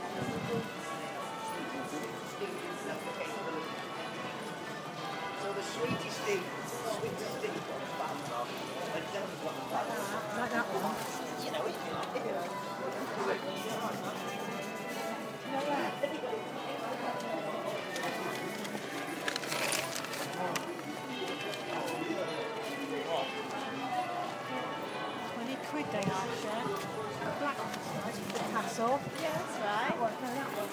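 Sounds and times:
church bells in Chesterfield: 0.0 - 29.0
market ambience in Chesterfield: 0.0 - 30.7.

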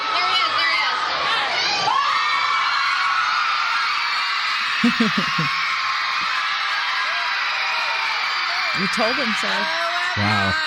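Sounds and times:
concert crowd cheering: 0.0 - 10.6
laughter: 4.7 - 5.6, 10.2 - 10.6
speech: 4.8 - 5.7, 8.8 - 10.6.

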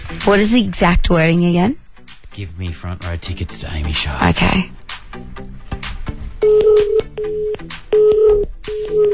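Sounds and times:
speech: 0.2 - 1.8, 2.4 - 5.9, 6.7 - 9.1
telephone dialing and ringing tones, short electronic beeps on a line: 6.4 - 9.1.

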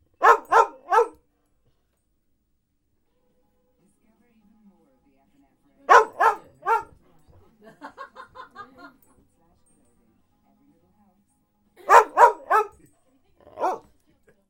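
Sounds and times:
television adverts: 0.0 - 14.3
dog barking at television adverts: 0.2 - 1.2, 5.9 - 7.0, 11.8 - 13.9
laughter: 7.6 - 9.0.

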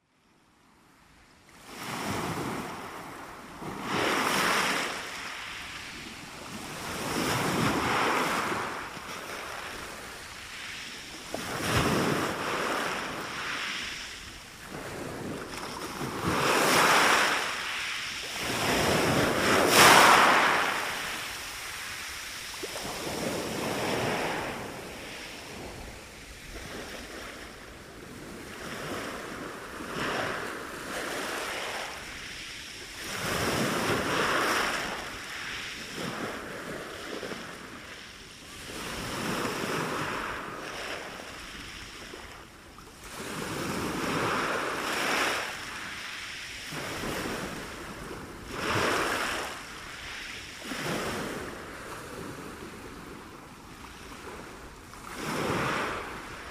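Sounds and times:
surf and waves at Shingle Street: 0.0 - 56.5.

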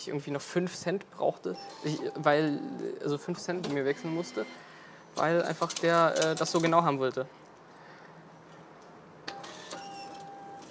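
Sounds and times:
speech: 0.0 - 7.4
ticket machine printing a ticket: 1.6 - 2.9, 3.6 - 4.6, 5.2 - 6.8, 9.3 - 10.7.

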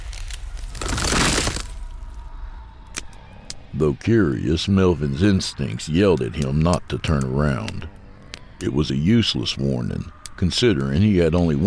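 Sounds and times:
concrete cracking and breaking: 0.0 - 1.9
speech: 3.8 - 8.0, 8.6 - 11.6.

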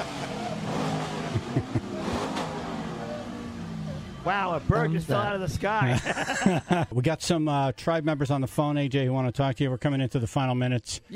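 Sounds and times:
Corvette engine idling and revving: 0.0 - 5.8
laughter: 1.2 - 2.3, 5.4 - 7.0
speech: 4.2 - 11.1.

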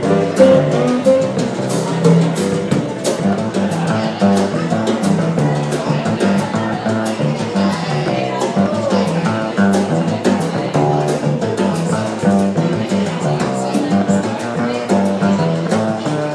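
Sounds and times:
jazz music in Cape Town: 0.0 - 16.3.

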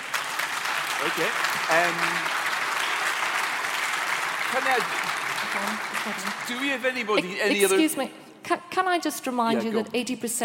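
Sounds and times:
audience applause: 0.0 - 7.8
speech: 1.0 - 2.4, 4.5 - 10.4.

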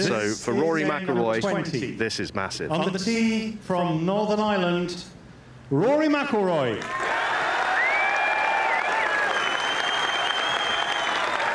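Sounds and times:
speech: 0.0 - 7.1
golf crowd applause: 6.8 - 11.5.

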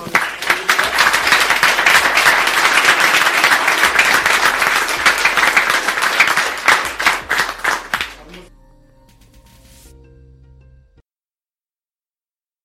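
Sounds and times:
audience applause: 0.0 - 8.5.

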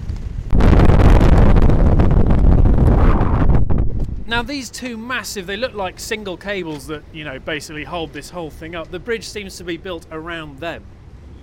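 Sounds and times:
wind buffeting a microphone at a suspension bridge: 0.0 - 4.5
speech: 4.3 - 11.0.

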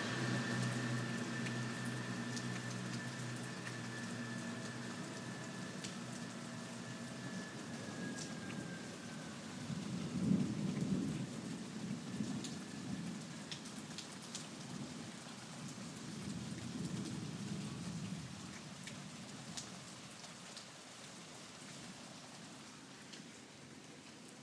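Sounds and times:
thunderstorm at midnight: 0.0 - 14.0, 14.6 - 19.7.

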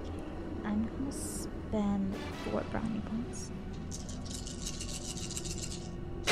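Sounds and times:
speech: 0.7 - 4.1
dice rattling in a cup: 3.9 - 5.9.

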